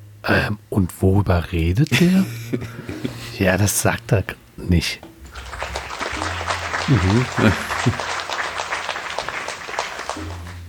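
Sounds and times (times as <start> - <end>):
speech: 0.3 - 5.1, 6.9 - 8.1
laughter: 1.9 - 3.4, 5.4 - 10.1
crowd applauding: 5.3 - 10.6
person cheering: 5.4 - 8.1.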